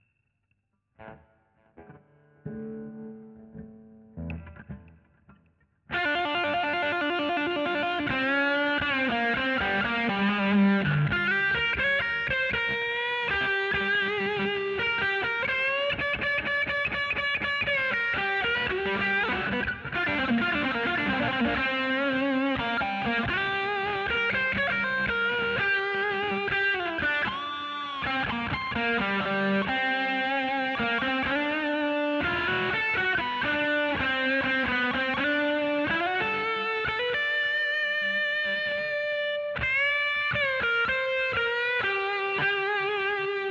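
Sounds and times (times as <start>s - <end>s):
guitar solo: 1.0s - 43.4s.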